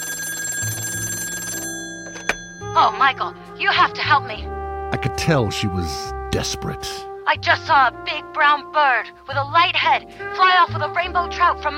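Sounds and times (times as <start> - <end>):
telephone ringing with electronic tone: 0.0 - 3.6
speech: 2.8 - 11.7.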